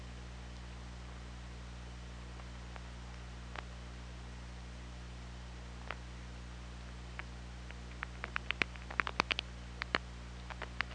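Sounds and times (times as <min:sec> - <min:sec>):
low hum: 0:00.0 - 0:10.9
killer whale clicks and squeaks: 0:07.2 - 0:10.9.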